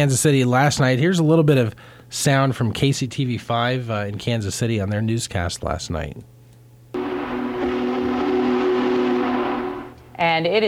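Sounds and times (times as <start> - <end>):
speech: 0.0 - 6.4, 10.2 - 10.6
Union Pacific Big Boy steam locomotive running: 7.0 - 10.0.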